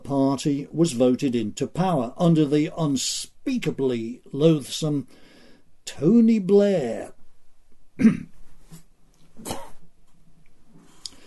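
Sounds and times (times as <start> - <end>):
speech: 0.4 - 5.2, 5.8 - 7.2, 8.0 - 8.3
person coughing: 8.0 - 8.3, 9.4 - 9.8
throat clearing: 8.0 - 8.3, 9.4 - 9.8
person spitting: 9.4 - 9.8.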